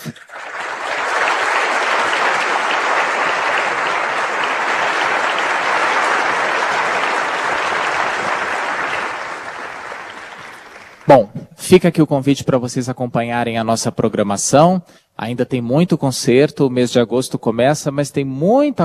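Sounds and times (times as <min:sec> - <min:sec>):
audience applause: 0:00.0 - 0:11.2
speech: 0:11.1 - 0:18.8.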